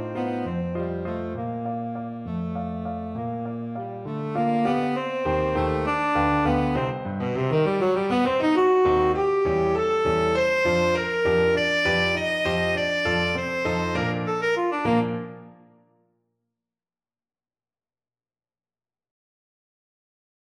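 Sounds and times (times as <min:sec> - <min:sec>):
tenor saxophone: 0:00.0 - 0:15.7.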